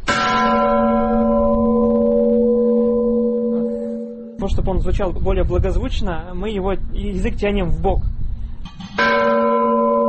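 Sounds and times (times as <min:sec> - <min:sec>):
lowest church bell struck with rattling tone: 0:00.0 - 0:04.6, 0:09.0 - 0:10.0
speech: 0:04.4 - 0:09.2.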